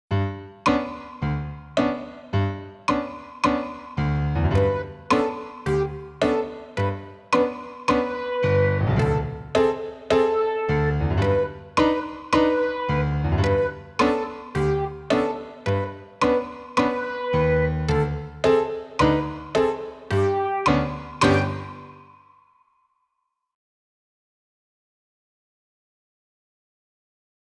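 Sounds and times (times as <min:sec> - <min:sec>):
fast accompaniment music: 0:00.6 - 0:22.1.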